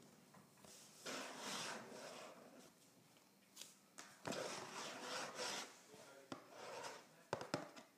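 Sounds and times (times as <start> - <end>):
scratching on a cardboard box: 1.1 - 2.5, 4.3 - 7.8.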